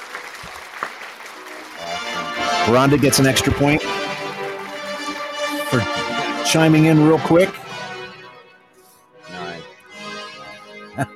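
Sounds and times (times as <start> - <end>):
crowd applause: 0.0 - 7.8
speech: 2.7 - 4.0, 6.5 - 7.6, 11.0 - 11.1.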